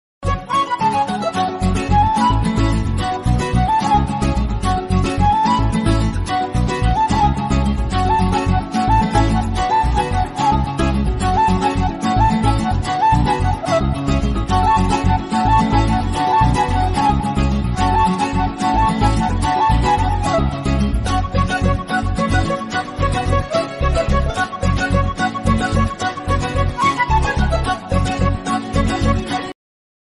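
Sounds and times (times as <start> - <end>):
Tamil love background music ringtone: 0.2 - 29.5.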